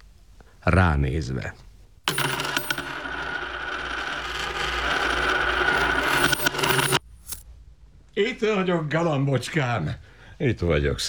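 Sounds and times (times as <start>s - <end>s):
speech: 0.6s - 1.7s, 8.2s - 11.0s
bag of gold coins dropped and spilling: 2.1s - 7.4s.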